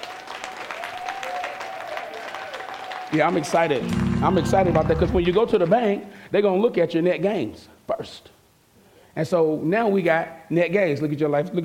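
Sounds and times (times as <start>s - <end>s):
audience clapping: 0.0s - 5.9s
speech: 3.1s - 8.3s, 9.2s - 11.6s.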